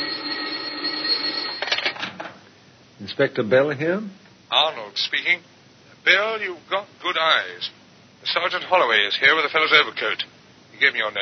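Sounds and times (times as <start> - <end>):
desk telephone ringing on the inspector's desk: 0.0 - 2.1
speech: 3.1 - 11.2.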